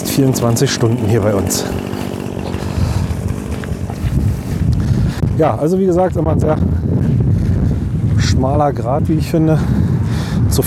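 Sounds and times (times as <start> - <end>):
chainsaw idling: 0.0 - 8.1
speech: 0.2 - 2.1, 5.4 - 6.8, 8.4 - 10.6.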